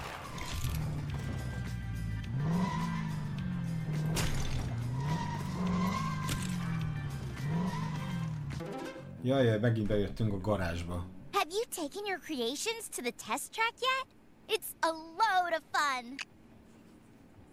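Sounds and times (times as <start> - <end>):
video game Lego vehicle engine revving: 0.0 - 8.7
video game tire squeal skids: 2.3 - 3.3, 4.6 - 8.4
speech: 9.2 - 16.3.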